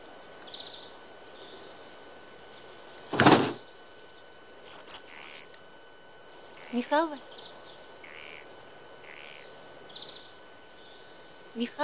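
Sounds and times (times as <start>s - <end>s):
trying a locked door: 3.2s - 3.6s
speech: 6.7s - 7.4s, 11.6s - 11.8s.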